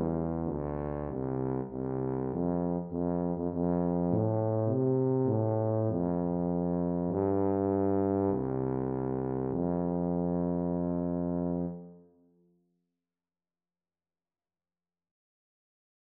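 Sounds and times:
tuba melody: 0.0s - 12.1s.

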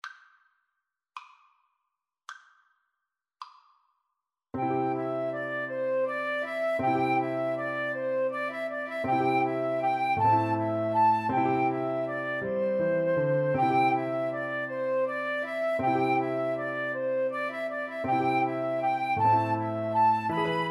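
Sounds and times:
piano trio: 4.6s - 20.7s.

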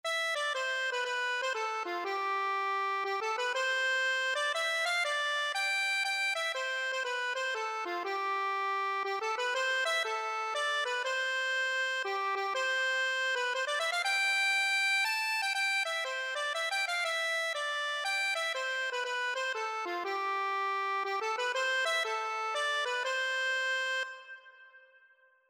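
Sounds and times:
accordion: 0.0s - 25.0s.

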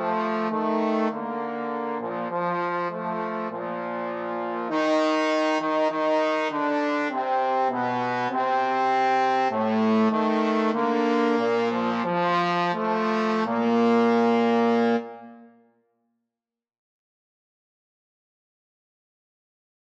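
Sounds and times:
trombone trio: 0.0s - 15.4s.

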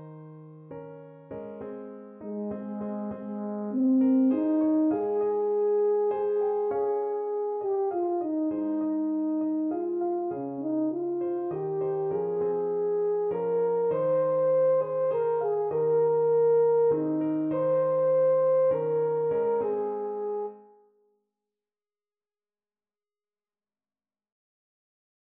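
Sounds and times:
tenor horn melody: 2.2s - 20.7s.

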